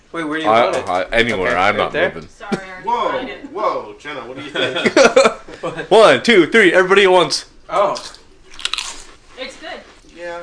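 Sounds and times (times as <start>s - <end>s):
speech: 0.1s - 8.2s
laughter: 4.4s - 6.0s
people biting into seaweed-flavoured chips: 7.9s - 9.2s.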